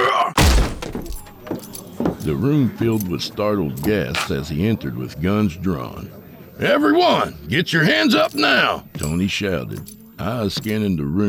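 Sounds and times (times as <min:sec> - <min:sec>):
door kicked open: 0:00.4 - 0:02.2
speech: 0:02.3 - 0:11.2.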